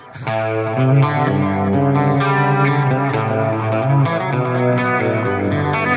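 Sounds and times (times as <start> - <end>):
bass line: 0.0 - 5.9
clean-toned electric guitar playing ringing chords: 0.0 - 5.9.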